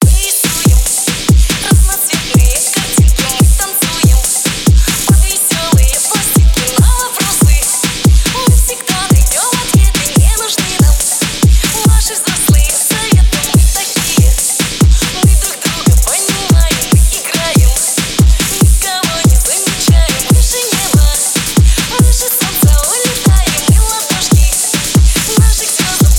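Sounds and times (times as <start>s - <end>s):
phonk music: 0.0s - 26.1s.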